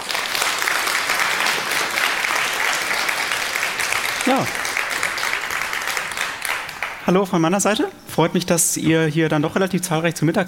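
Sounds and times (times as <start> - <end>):
audience applause: 0.0 - 7.1
speech: 4.3 - 4.6, 7.1 - 10.4.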